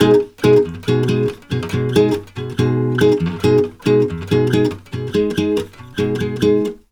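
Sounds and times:
bossa nova music with major chord: 0.0 - 6.8.

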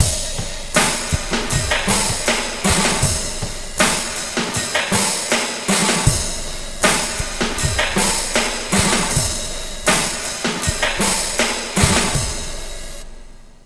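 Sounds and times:
slow wet funk lounge drums: 0.0 - 13.6.

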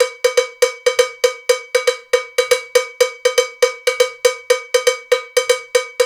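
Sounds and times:
bembe rhythm in six-eight world dance: 0.0 - 6.0.

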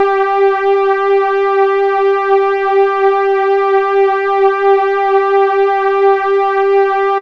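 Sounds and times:
synth note G4: 0.0 - 7.2.

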